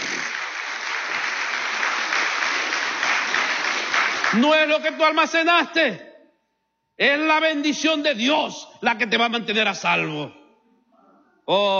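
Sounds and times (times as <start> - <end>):
audience applause: 0.0 - 4.4
speech: 4.3 - 6.1, 7.0 - 10.4, 11.5 - 11.7.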